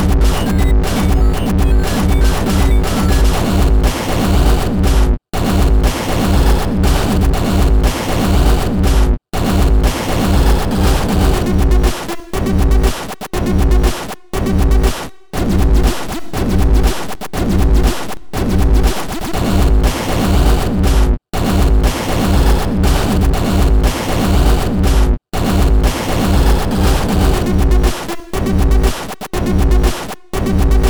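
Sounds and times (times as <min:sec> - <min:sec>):
industrial new beat music: 0:00.0 - 0:18.0, 0:18.6 - 0:30.8.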